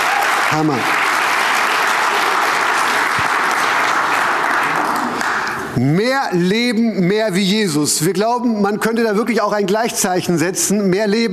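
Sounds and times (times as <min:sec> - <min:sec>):
audience applause: 0:00.0 - 0:05.8
speech: 0:00.5 - 0:01.0, 0:05.8 - 0:11.3.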